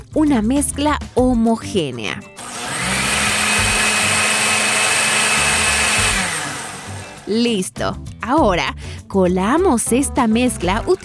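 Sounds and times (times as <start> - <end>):
speech: 0.2 - 2.3, 7.3 - 11.0
blender blending soaked soybeans with water: 2.4 - 7.4.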